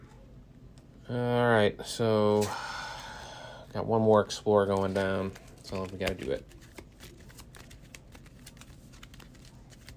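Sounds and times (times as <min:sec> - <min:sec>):
speech: 0:01.1 - 0:02.8, 0:03.7 - 0:06.6
deck of cards being shuffled: 0:04.0 - 0:09.9.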